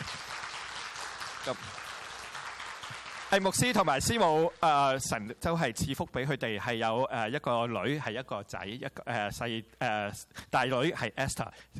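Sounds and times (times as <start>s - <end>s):
crowd applauding welcoming a pastor and his family: 0.0s - 4.7s
speech: 1.4s - 1.8s, 3.3s - 11.7s.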